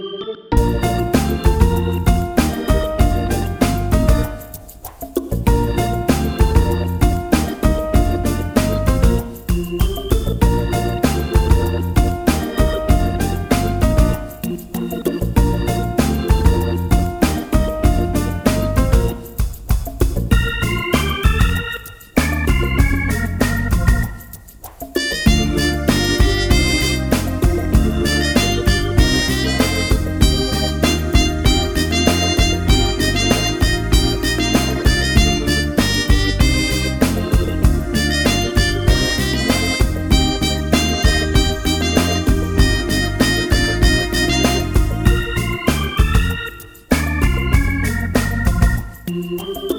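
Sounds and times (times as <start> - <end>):
blues music: 0.5 - 49.7.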